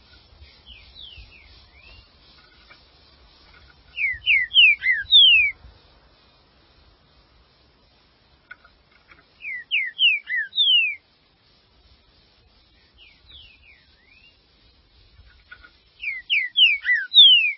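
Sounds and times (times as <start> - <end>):
green-winged saltator song: 0.4 - 2.2, 3.9 - 5.6, 9.4 - 11.1, 12.6 - 14.9, 16.0 - 17.5.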